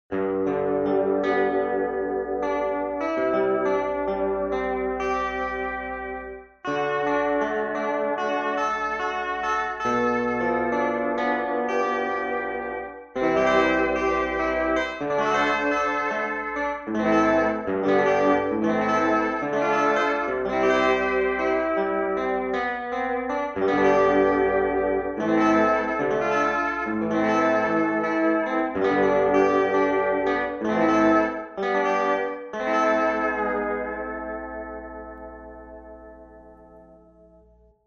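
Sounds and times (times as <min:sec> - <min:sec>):
hawaiian guitar: 0:00.2 - 0:35.8.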